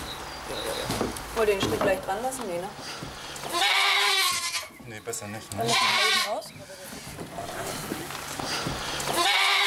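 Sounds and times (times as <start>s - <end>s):
speech: 1.4s - 3.7s, 4.9s - 9.3s
goat bleating: 3.4s - 4.8s, 5.5s - 6.5s, 8.8s - 9.6s.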